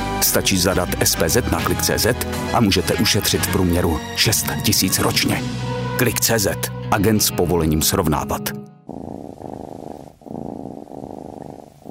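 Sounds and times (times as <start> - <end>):
speech: 0.2 - 8.6
cat purring: 8.9 - 11.8.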